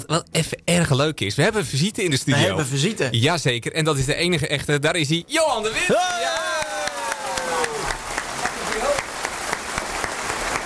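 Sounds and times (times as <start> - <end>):
speech: 0.1 - 6.5
studio audience applause: 5.8 - 10.6.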